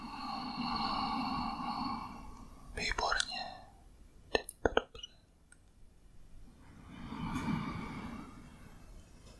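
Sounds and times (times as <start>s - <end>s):
slow breath noise from a guided breathing exercise: 0.0s - 2.8s, 6.6s - 9.3s.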